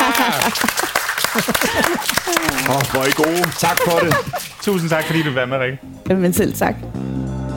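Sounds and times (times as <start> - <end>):
live audience clapping: 0.0 - 5.4
laughter: 0.0 - 5.6
speech: 0.4 - 7.4.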